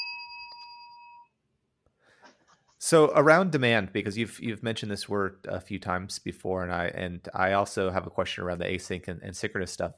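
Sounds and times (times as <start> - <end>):
bell being rung: 0.0 - 1.4
speech: 2.8 - 9.9.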